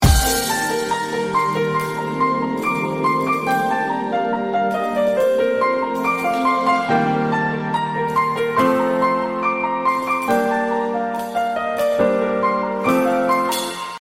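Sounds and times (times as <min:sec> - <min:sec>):
sad piano cover: 0:00.0 - 0:14.0.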